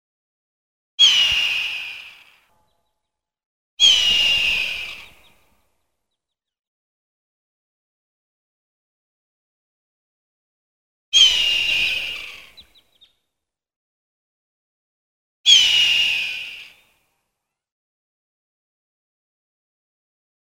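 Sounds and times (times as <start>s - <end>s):
hawk giving harsh hoarse screams: 1.0s - 2.4s, 3.8s - 5.3s, 11.2s - 12.6s, 15.5s - 16.8s.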